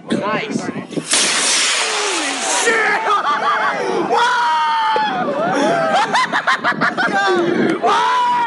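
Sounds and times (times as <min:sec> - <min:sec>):
speech: 0:00.1 - 0:01.1, 0:05.7 - 0:08.3
toy rocket launch rushing whoosh: 0:00.9 - 0:03.2
laughter: 0:02.5 - 0:04.3, 0:05.1 - 0:07.8.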